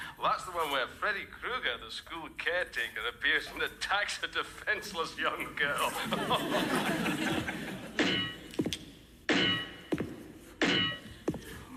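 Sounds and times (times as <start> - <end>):
speech: 0.2 - 8.0
laughter: 5.8 - 8.0
metal leg thumping in a comedy radio sketch: 7.9 - 11.6.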